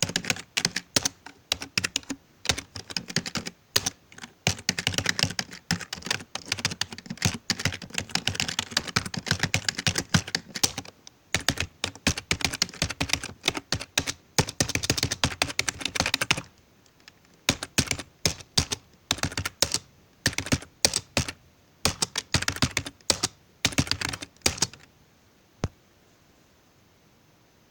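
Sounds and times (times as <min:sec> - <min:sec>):
keyboard typing text: 0:00.0 - 0:24.9.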